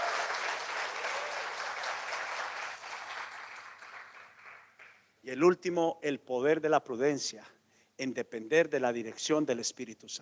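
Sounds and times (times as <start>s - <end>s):
audience applauding: 0.0s - 5.0s
speech: 5.3s - 10.2s.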